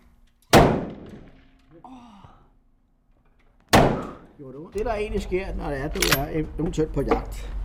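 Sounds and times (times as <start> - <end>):
rifle shots: 0.5 - 1.6, 3.7 - 4.3
speech: 1.8 - 2.4, 4.4 - 7.6.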